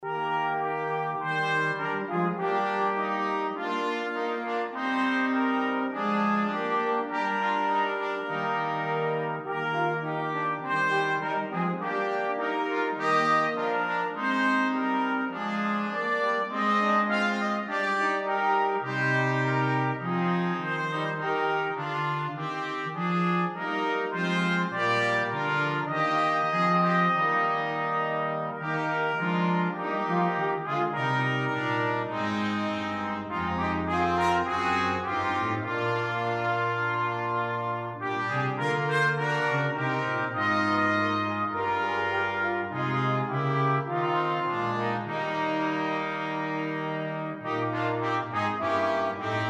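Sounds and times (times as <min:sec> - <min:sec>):
brass quintet: 0:00.0 - 0:49.4.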